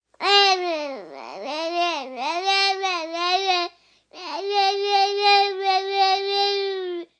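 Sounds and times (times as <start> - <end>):
one-year-old baby babbling: 0.2 - 7.1.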